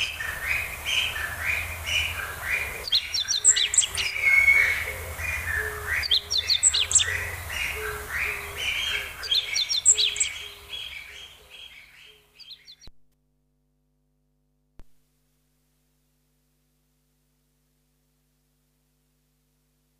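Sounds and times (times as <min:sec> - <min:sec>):
meadow bunting twittering song: 0:00.0 - 0:12.9.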